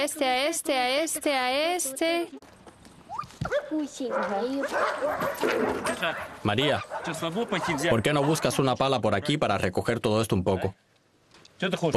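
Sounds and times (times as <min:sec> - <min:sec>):
speech: 0:00.0 - 0:10.9, 0:11.6 - 0:11.9
dogs barking and yelping: 0:03.1 - 0:08.8.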